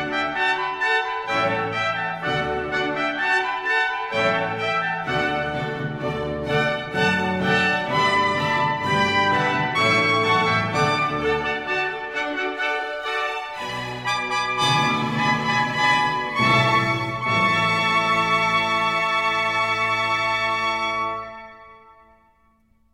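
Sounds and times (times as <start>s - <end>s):
baroque trumpets playing: 0.0s - 22.1s.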